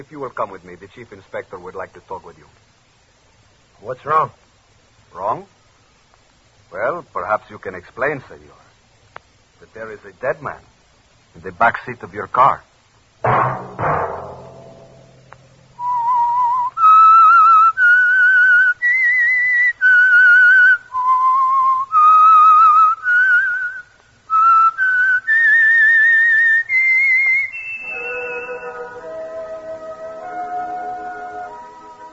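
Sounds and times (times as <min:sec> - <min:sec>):
speech: 0:00.0 - 0:02.7, 0:03.8 - 0:04.4, 0:05.1 - 0:05.6, 0:06.7 - 0:08.6, 0:09.6 - 0:10.7, 0:11.4 - 0:13.7
brief opening thud: 0:13.2 - 0:15.5
whistled theme melody of a radio program: 0:15.8 - 0:32.1.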